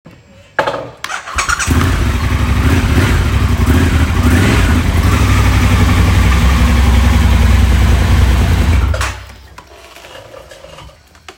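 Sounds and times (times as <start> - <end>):
Triumph Scrambler 1200 motorcycle engine: 1.1 - 9.4.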